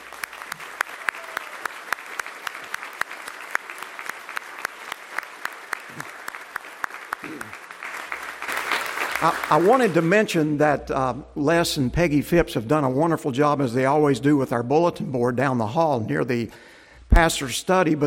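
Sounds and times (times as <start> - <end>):
church congregation clapping at a Communion Sunday service: 0.0 - 10.6
speech: 9.2 - 18.0.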